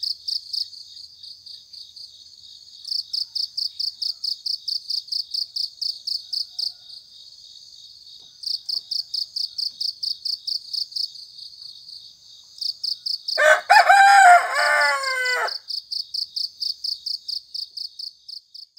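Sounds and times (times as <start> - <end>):
pulsed cricket chirping: 0.0 - 18.7
rooster crowing: 13.4 - 15.6.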